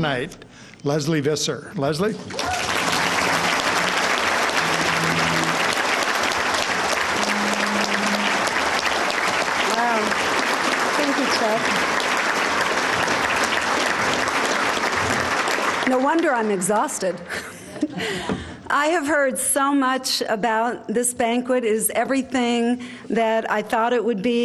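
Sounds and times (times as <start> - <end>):
speech: 0.0 - 2.9, 15.9 - 24.4
audience applause welcoming a speaker: 2.2 - 17.4
faint voices and cheers: 2.3 - 8.9, 9.5 - 11.8
laughter: 17.1 - 18.4.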